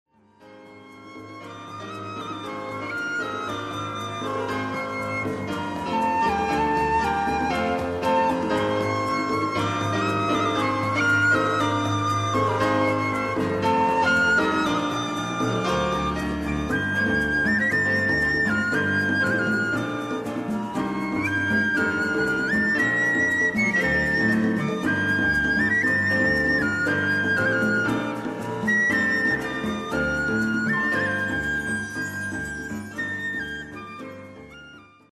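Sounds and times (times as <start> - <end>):
instrumental music: 0.1 - 35.1.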